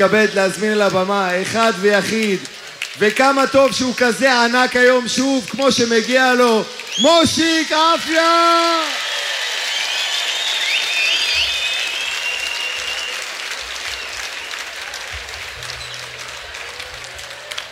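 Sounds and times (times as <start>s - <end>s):
speech: 0.0s - 9.0s
crowd applause: 0.0s - 17.7s
cheers and whistles: 6.8s - 17.7s.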